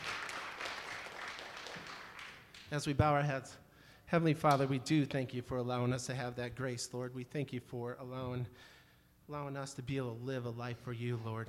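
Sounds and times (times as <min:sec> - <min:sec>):
crowd clapping hands in praise: 0:00.0 - 0:02.9
speech: 0:02.7 - 0:11.4.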